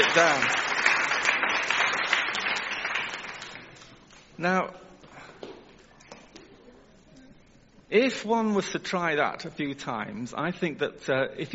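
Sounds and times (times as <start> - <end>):
audience applause: 0.0 - 3.8
speech: 0.1 - 0.6, 4.4 - 4.8, 7.9 - 11.5.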